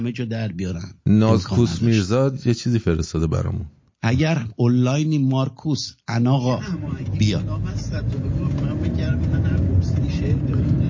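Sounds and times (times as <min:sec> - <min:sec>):
speech: 0:00.0 - 0:10.8
car engine and tyre rumble on a road: 0:06.6 - 0:10.8.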